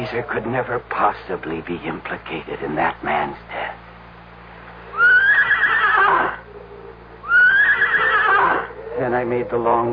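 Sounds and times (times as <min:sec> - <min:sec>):
speech: 0:00.1 - 0:03.8, 0:09.0 - 0:09.9
horse whinnying: 0:04.9 - 0:06.4, 0:07.2 - 0:08.8.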